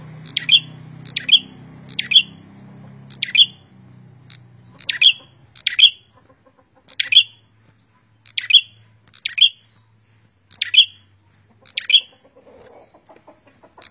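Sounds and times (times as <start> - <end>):
prinia giving snappy high chirps: 0.0 - 13.8.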